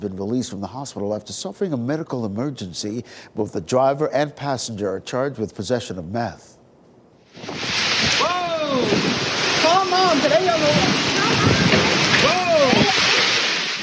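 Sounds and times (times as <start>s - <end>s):
speech: 0.0s - 6.6s, 7.4s - 12.4s
heavy rain pouring down: 7.3s - 13.8s
person exclaiming: 8.2s - 10.5s, 12.2s - 13.4s.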